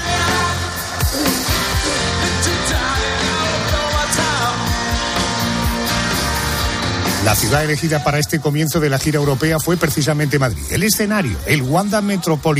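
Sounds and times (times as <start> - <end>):
sustained guitar chords: 0.0 - 7.8
driving drums: 0.0 - 12.4
live rock performance: 0.0 - 12.4
crowd noise: 0.0 - 12.5
speech: 7.2 - 12.5.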